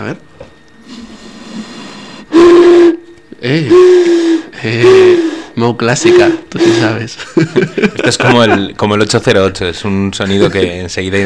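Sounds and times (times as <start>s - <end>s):
speech: 0.0s - 0.3s, 3.4s - 11.2s
blowing across glass bottles: 0.8s - 7.1s
laughter: 6.6s - 8.9s, 10.2s - 11.0s.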